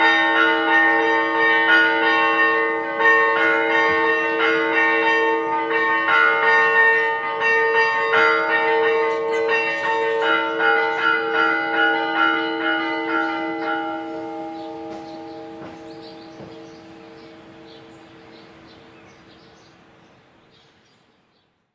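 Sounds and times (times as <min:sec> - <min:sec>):
church bells ringing: 0:00.0 - 0:19.9.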